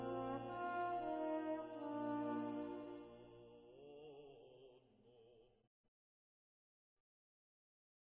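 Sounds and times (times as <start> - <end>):
requiem tuba: 0.0 - 3.4.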